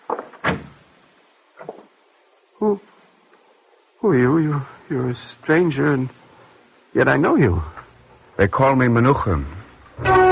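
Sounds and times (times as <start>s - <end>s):
door being opened: 0.1s - 0.8s
speech: 2.6s - 2.9s, 4.0s - 6.2s, 6.9s - 7.8s, 8.4s - 10.1s.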